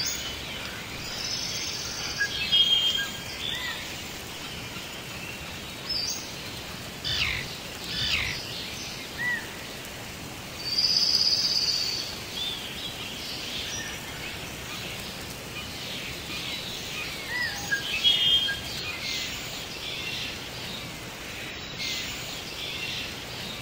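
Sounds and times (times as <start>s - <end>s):
tropical rainforest rain: 0.0s - 23.6s.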